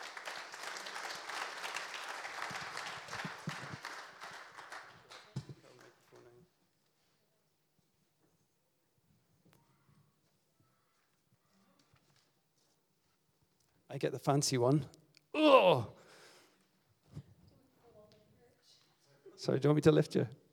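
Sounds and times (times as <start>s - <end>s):
audience applause: 0.0s - 6.3s
speech: 14.0s - 15.0s, 19.4s - 20.5s.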